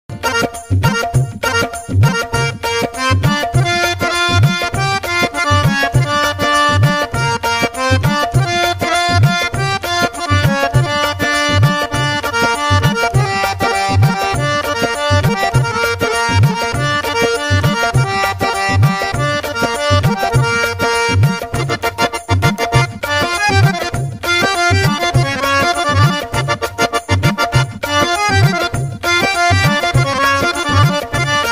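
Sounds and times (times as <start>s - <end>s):
instrumental ringtone: 0.1s - 31.5s.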